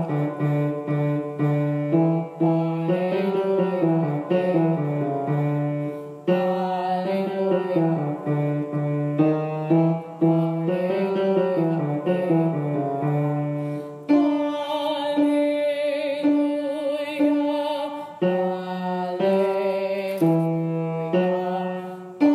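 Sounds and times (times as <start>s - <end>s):
tenor singing choir practice part: 0.0s - 22.3s.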